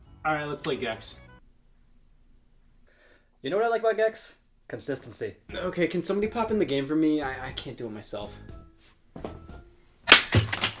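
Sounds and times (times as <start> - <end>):
speech: 0.2 - 1.3, 3.4 - 8.6
hammer smashing a 3DS handheld game console: 10.1 - 10.7.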